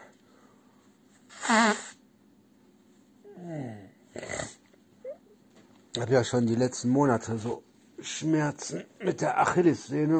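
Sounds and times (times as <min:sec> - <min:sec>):
nose blowing into a paper tissue: 0:01.3 - 0:02.0
speech: 0:06.0 - 0:10.1.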